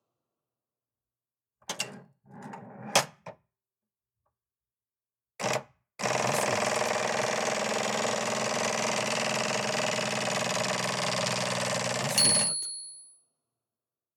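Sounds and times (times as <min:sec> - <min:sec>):
old typewriter: 0:05.4 - 0:12.8.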